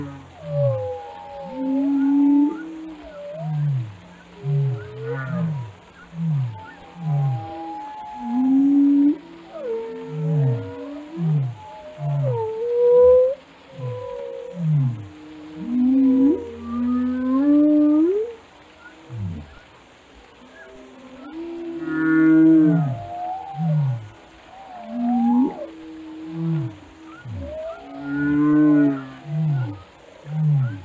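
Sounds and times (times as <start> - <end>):
whale calls: 0.0 - 30.8.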